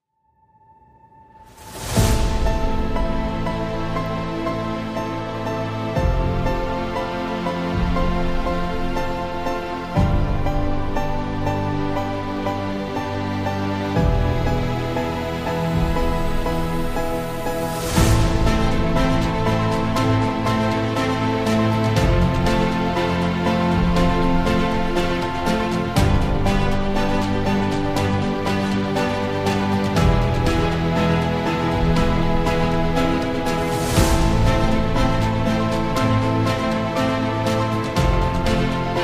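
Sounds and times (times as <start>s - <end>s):
orchestral music: 1.2s - 39.0s.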